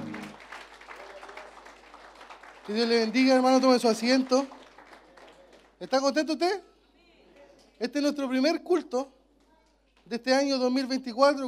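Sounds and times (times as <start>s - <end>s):
audience applause: 0.0s - 6.2s
speech: 2.7s - 4.6s, 5.8s - 6.7s, 7.8s - 9.2s, 10.1s - 11.4s.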